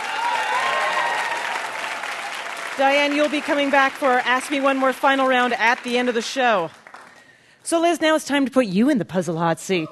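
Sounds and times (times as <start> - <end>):
game show studio audience applauding two contestants: 0.0 - 7.5
speech: 2.8 - 6.8, 7.6 - 9.9.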